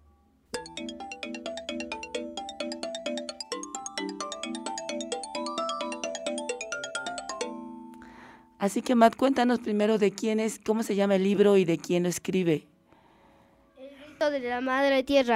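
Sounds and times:
radio section identifier jingle with bright bell-like electronic notes: 0:00.6 - 0:08.6
speech: 0:08.6 - 0:12.7, 0:14.2 - 0:15.3.

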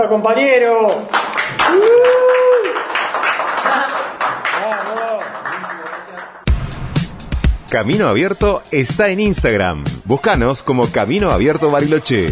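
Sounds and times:
speech: 0:00.0 - 0:02.4, 0:07.7 - 0:12.3
small group clapping: 0:00.9 - 0:06.5
voices whooping and cheering: 0:01.6 - 0:02.9.

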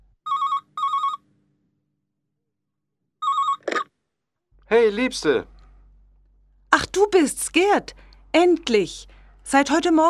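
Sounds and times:
telephone ringing: 0:00.2 - 0:01.2, 0:03.2 - 0:03.9
speech: 0:04.7 - 0:05.5, 0:07.0 - 0:10.0.

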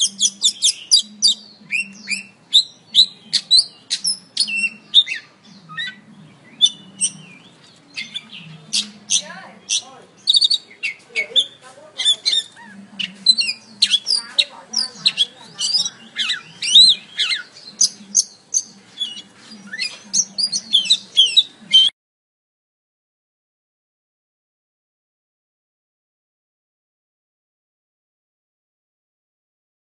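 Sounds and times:
Oriental magpie-robin singing sharp whistles and chattering notes: 0:00.0 - 0:21.9.

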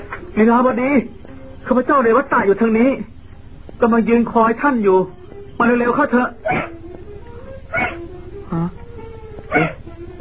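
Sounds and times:
low hum: 0:00.0 - 0:10.1
speech: 0:00.4 - 0:03.1, 0:03.8 - 0:06.8
barn owl screeching: 0:06.4 - 0:06.8, 0:07.5 - 0:08.1, 0:09.5 - 0:09.9.

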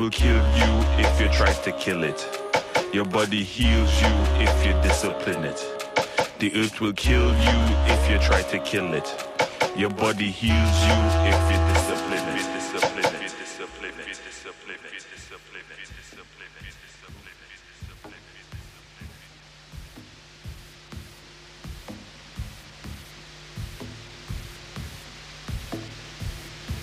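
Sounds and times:
speech: 0:00.0 - 0:05.8, 0:06.4 - 0:12.1
deliberate white noise in a slow electronic track: 0:00.0 - 0:26.8.

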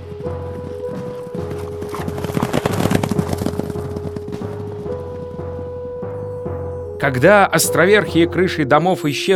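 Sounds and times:
horses carrying riders galloping off, clattering hoofbeats: 0:00.0 - 0:06.9
speech: 0:07.0 - 0:09.3.

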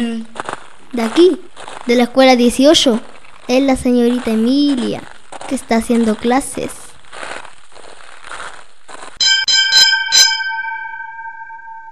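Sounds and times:
speech: 0:00.9 - 0:06.8
bell of School 18 struck at noon: 0:09.2 - 0:11.9.

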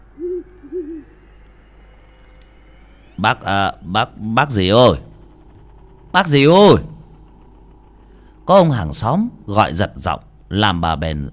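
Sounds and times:
owl wavering mournful wailing cries: 0:00.0 - 0:01.8
owl hooting: 0:00.0 - 0:07.0
speech: 0:03.2 - 0:05.1, 0:06.1 - 0:06.9, 0:08.5 - 0:11.3.

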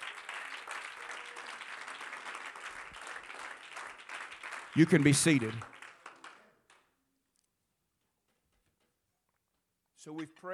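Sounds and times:
church congregation clapping their hands in praise: 0:00.0 - 0:07.0
speech: 0:04.8 - 0:05.7, 0:10.2 - 0:10.5.

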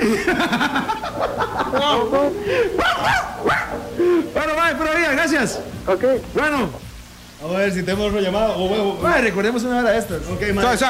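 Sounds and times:
laughter: 0:00.0 - 0:04.6
dog barking: 0:02.7 - 0:04.0
speech: 0:05.4 - 0:06.8, 0:07.4 - 0:10.8.

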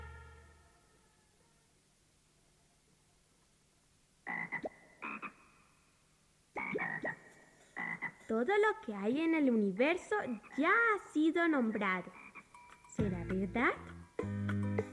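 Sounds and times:
frog croaking: 0:04.2 - 0:05.9, 0:06.5 - 0:08.3, 0:12.0 - 0:12.9
speech: 0:08.3 - 0:12.2, 0:13.0 - 0:13.9.

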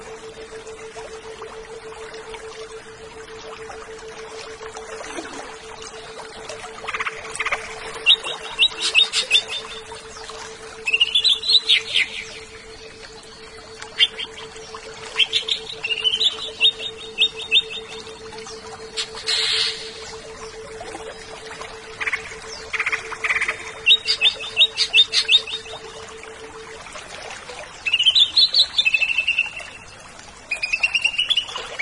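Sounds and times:
continuous low hum: 0:00.0 - 0:30.5
greater green leafbird singing: 0:06.9 - 0:13.2, 0:13.8 - 0:18.4, 0:19.0 - 0:20.2, 0:22.0 - 0:25.8, 0:27.8 - 0:29.7.

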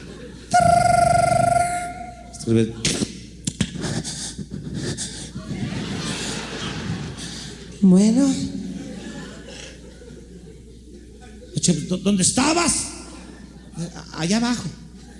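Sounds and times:
laughter: 0:00.0 - 0:01.4, 0:03.8 - 0:07.8, 0:08.6 - 0:11.6, 0:13.1 - 0:14.1, 0:15.0 - 0:15.1
voice imitating a telephone ringing with a high-pitched tone: 0:00.5 - 0:02.4
speech: 0:02.5 - 0:03.0, 0:07.8 - 0:08.5, 0:11.7 - 0:12.9, 0:13.9 - 0:14.8.

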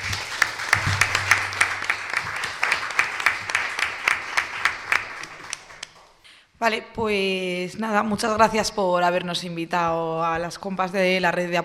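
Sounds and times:
audience applause: 0:00.0 - 0:06.0
speech: 0:06.6 - 0:11.6.

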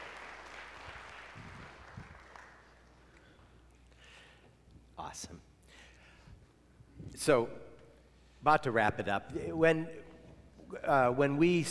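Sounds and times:
audience round of applause: 0:00.0 - 0:03.1
speech: 0:05.1 - 0:05.5, 0:07.2 - 0:07.6, 0:08.4 - 0:10.0, 0:10.7 - 0:11.7.

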